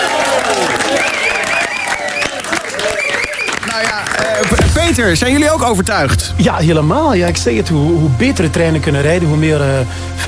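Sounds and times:
audience applause: 0.0 - 4.8
speech: 4.9 - 10.2.

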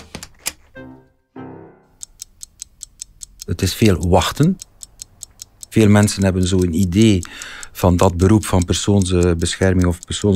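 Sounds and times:
door closing: 0.0 - 0.8
speech: 3.5 - 4.7, 5.8 - 10.3.

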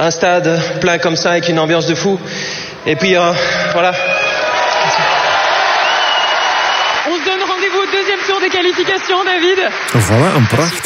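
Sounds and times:
speech: 0.0 - 4.2, 8.4 - 10.8
stadium crowd applauding and cheering: 3.6 - 10.8.

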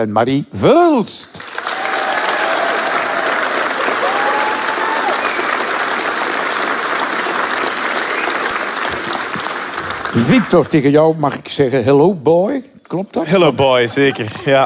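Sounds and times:
speech: 0.0 - 1.5, 10.2 - 14.6
enthusiastic audience applause: 1.4 - 10.8.

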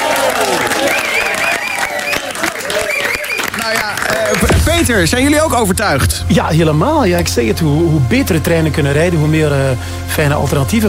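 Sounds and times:
audience applause: 0.0 - 4.7
speech: 4.8 - 10.8.

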